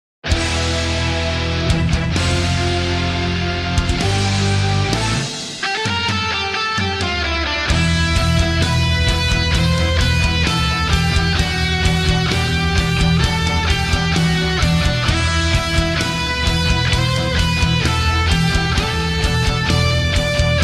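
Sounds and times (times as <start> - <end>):
metal music: 0.2 - 20.6.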